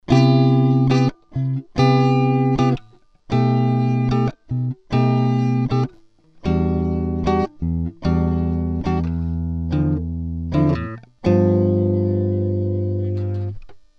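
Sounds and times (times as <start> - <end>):
guitar through MiniFuse 2 Hi-Z input: 0.0 - 13.9.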